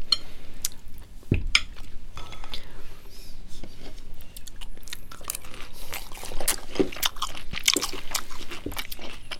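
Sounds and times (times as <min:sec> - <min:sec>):
crunchy chewing on crisp pan-fried food: 0:04.4 - 0:09.3.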